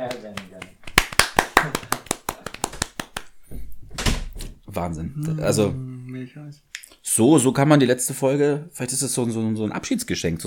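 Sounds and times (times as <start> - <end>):
applause: 0.0 - 3.3
speech: 4.8 - 10.4.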